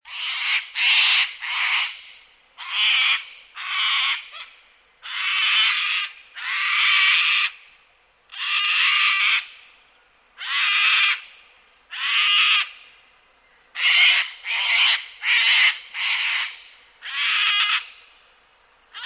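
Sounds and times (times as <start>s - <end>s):
sulphur-crested cockatoo screeching harshly: 0.1s - 1.9s, 2.6s - 7.6s, 8.3s - 9.5s, 10.4s - 11.2s, 11.9s - 12.7s, 13.8s - 17.9s.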